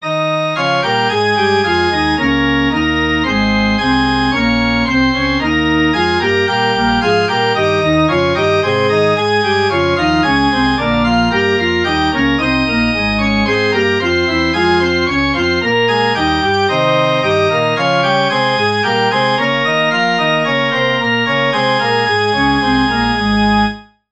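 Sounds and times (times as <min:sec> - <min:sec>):
musical prelude: 0:00.0 - 0:24.1.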